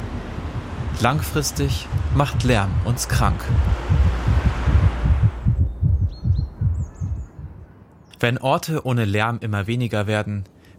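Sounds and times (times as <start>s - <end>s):
heartbeat pounding: 0.3s - 7.7s
speech: 1.0s - 4.3s, 8.2s - 10.7s.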